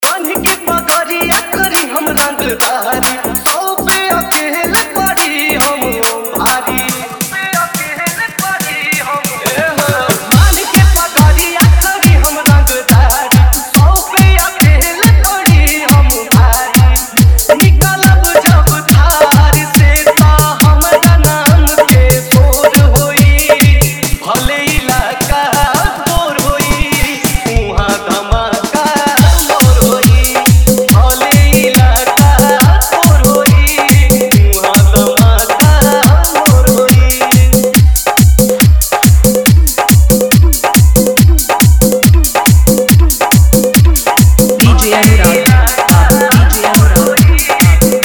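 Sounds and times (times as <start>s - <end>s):
dholak with hard bass mix: 0.0s - 48.0s.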